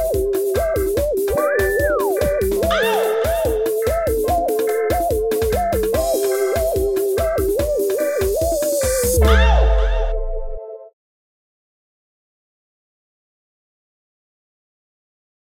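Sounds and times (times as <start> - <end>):
groove music: 0.0 - 10.8.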